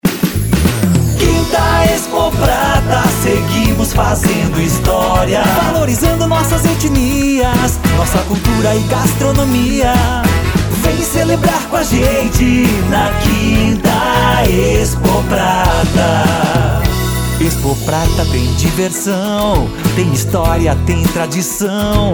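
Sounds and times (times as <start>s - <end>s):
jingle: 0.1s - 21.8s.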